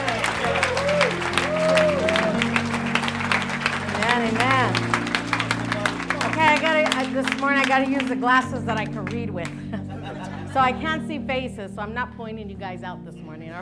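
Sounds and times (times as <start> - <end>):
church audience clapping to welcome a pastor: 0.0 - 10.2
speech: 7.4 - 9.7, 10.6 - 13.5
laughter: 9.5 - 11.0.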